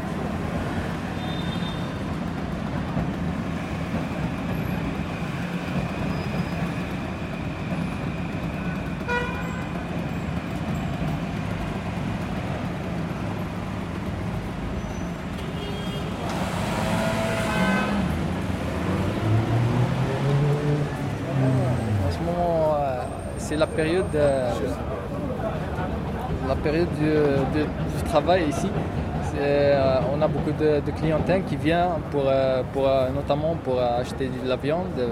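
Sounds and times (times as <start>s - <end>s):
steady roar of traffic on busy Paris boulevard: 0.0s - 35.1s
car horns: 1.2s - 2.0s, 9.0s - 9.7s, 15.4s - 18.1s
louder vehicle passing: 16.2s - 22.5s
crowd of voices murmuring: 19.0s - 29.4s
speech: 23.6s - 24.8s, 26.6s - 35.1s.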